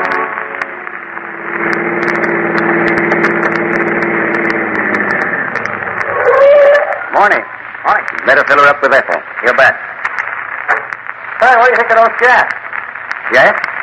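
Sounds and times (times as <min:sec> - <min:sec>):
car engine of a motorist pulling into a filling station in San Francisco: 0:00.1 - 0:11.1
speech: 0:08.3 - 0:09.9, 0:11.5 - 0:12.5, 0:13.3 - 0:13.7.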